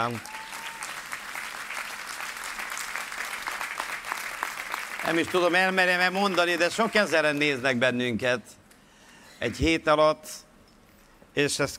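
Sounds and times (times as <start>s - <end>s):
speech: 0.0s - 0.3s, 5.0s - 8.6s, 9.4s - 10.5s, 11.4s - 11.7s
audience applause: 0.0s - 7.8s.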